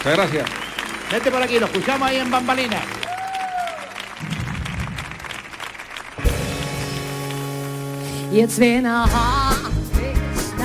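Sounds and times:
speech: 0.0s - 3.0s, 8.3s - 10.1s
audience applause: 0.0s - 8.1s.

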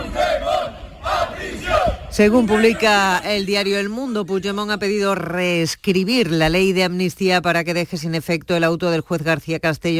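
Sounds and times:
crowd shouting insults at a politician: 0.0s - 3.2s
speech: 2.2s - 9.9s.

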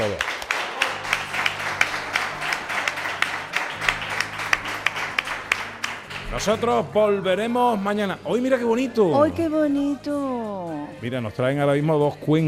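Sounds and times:
speech: 0.0s - 0.3s, 6.3s - 12.4s
audience applause: 0.0s - 6.8s.

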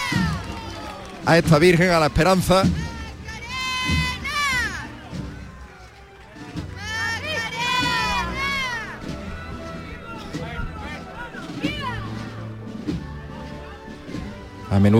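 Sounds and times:
crowd applauding and cheering: 0.0s - 14.6s
speech: 1.2s - 2.8s, 14.8s - 14.9s.

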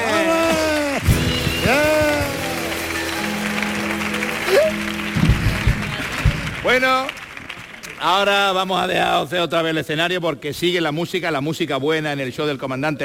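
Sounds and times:
audience applause: 0.0s - 8.9s
speech: 6.8s - 7.2s, 8.0s - 13.0s.

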